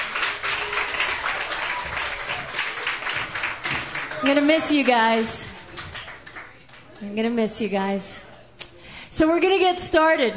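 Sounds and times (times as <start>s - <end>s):
audience applause at a songwriters' stage evening: 0.0s - 7.0s
speech: 4.2s - 5.5s, 7.0s - 8.3s, 9.2s - 10.3s.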